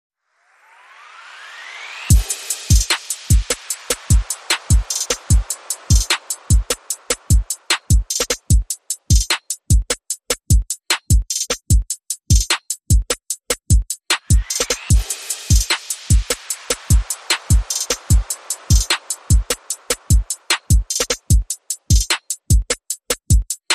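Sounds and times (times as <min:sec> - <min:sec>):
percussion: 0:01.2 - 0:23.7.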